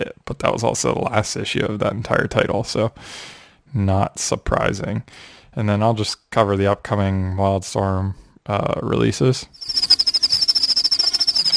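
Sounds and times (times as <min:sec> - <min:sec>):
speech: 0:00.0 - 0:09.8
crickets chirping: 0:09.6 - 0:11.5.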